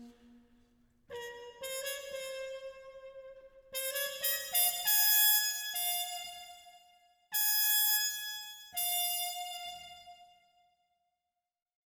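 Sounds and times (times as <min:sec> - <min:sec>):
trumpet: 0:01.1 - 0:10.4.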